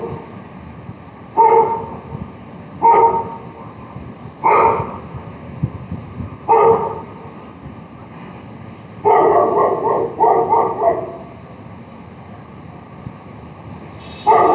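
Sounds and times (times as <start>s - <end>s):
barking: 1.4s - 2.0s, 2.8s - 3.5s, 4.4s - 5.0s, 6.5s - 7.1s, 9.0s - 11.4s, 14.2s - 14.5s.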